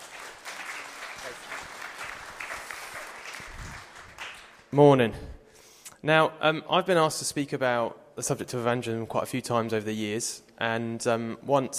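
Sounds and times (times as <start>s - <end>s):
audience applause: 0.0s - 4.7s
speech: 4.7s - 5.3s, 6.0s - 11.7s.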